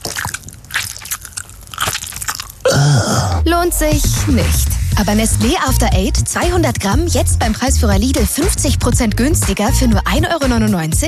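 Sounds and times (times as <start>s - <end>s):
crunchy nibbling on peppermint tea bags: 0.0s - 3.0s
speech: 3.1s - 11.0s.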